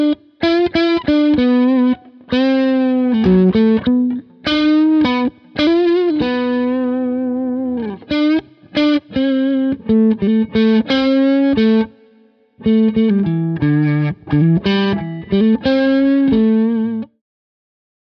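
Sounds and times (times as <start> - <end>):
dirty electric guitar on neck pickup: 0.0 - 17.2.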